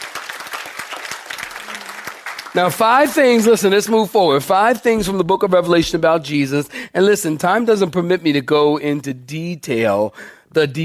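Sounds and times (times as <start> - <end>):
audience clapping hands: 0.0 - 4.0
speech: 2.5 - 10.8.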